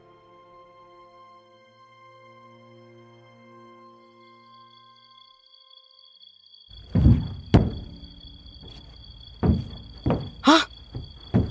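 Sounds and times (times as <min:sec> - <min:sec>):
banging on a bedroom door: 0:06.8 - 0:11.4
high-pitched cry: 0:10.4 - 0:10.7.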